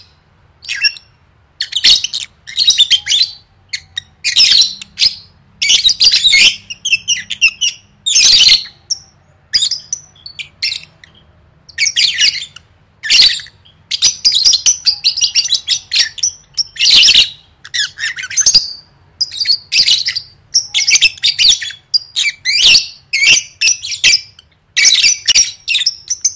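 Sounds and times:
lovebirds squawking and chirping: 0.6s - 26.3s.

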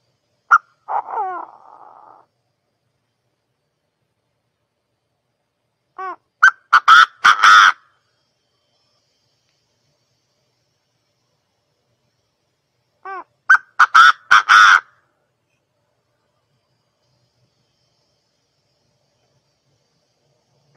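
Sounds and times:
partridge calling: 0.0s - 2.2s, 6.0s - 7.9s, 13.0s - 14.9s.

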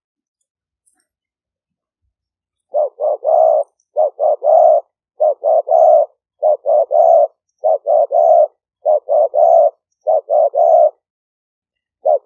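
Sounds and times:
spotted dove cooing: 2.7s - 11.0s, 12.0s - 12.2s.

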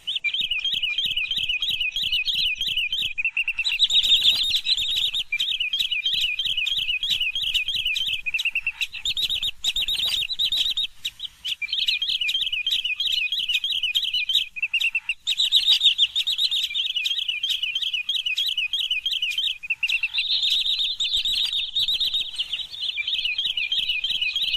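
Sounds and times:
green sandpiper calling: 0.0s - 24.5s.

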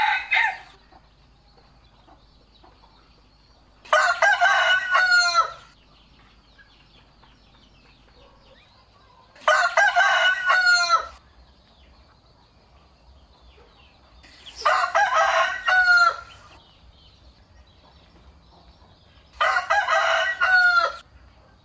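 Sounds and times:
rooster crowing: 0.0s - 0.8s, 3.9s - 5.8s, 9.4s - 11.2s, 14.6s - 16.5s, 19.4s - 21.0s.

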